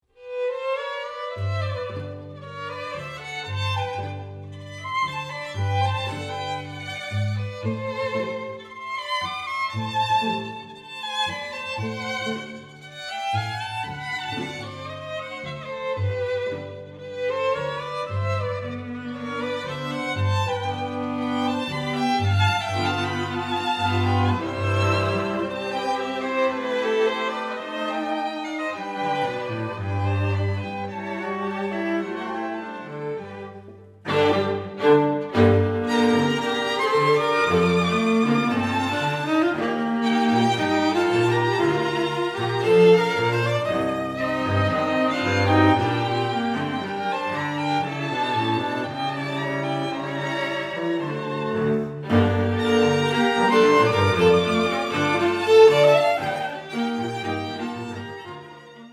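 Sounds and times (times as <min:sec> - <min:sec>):
tango music: 0:00.3 - 0:58.9.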